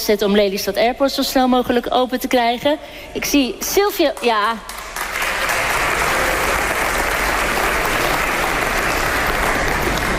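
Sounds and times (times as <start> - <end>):
speech: 0.1 - 4.8
sustained applause from a sizable audience: 4.7 - 10.1.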